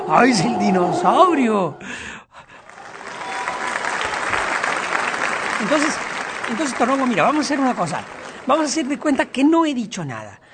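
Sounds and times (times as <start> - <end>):
speech: 0.1 - 2.2, 5.6 - 10.4
applause sound effect: 2.6 - 9.4.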